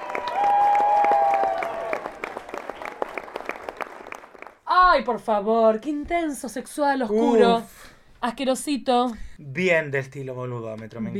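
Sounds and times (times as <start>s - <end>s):
audience applause: 0.0s - 4.6s
speech: 5.0s - 11.1s.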